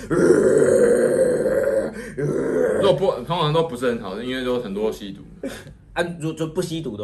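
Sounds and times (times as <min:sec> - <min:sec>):
person imitating a heavy metal growling scream: 0:00.0 - 0:03.2
speech: 0:00.1 - 0:00.5, 0:02.2 - 0:07.0.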